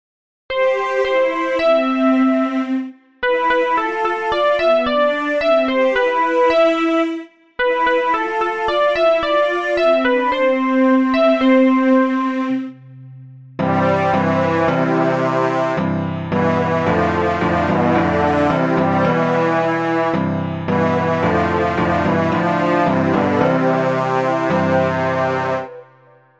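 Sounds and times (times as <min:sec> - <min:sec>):
keyboard: 0:00.5 - 0:26.3.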